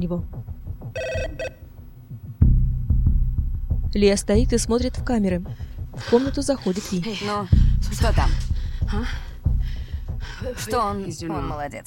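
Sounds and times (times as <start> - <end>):
speech: 0.0 - 1.6, 3.9 - 9.3, 10.4 - 11.8
steady low rumble: 0.0 - 11.3
heavy low thuds: 0.0 - 11.6
electronic telephone ringing on a desk: 1.0 - 1.6.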